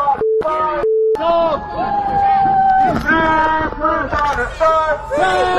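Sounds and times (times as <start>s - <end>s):
brief steady electronic tone: 0.2s - 1.3s
Palestinian protest crowd shouting on Sherbrooke Street in Montreal: 1.2s - 5.5s.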